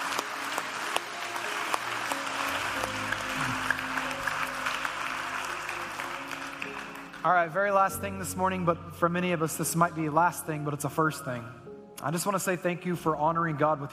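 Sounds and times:
church congregation applauding: 0.0 - 8.3
speech: 7.2 - 13.9.

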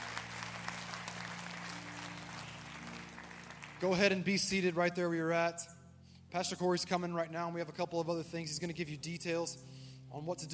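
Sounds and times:
church congregation applauding to welcome new members: 0.0 - 4.8
speech: 3.8 - 10.5.

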